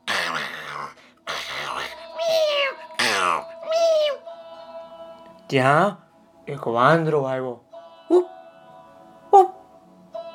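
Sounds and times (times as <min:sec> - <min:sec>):
two cats meowing and yowling while fighting over a flatbread: 0:02.1 - 0:04.2
speech: 0:05.5 - 0:08.4.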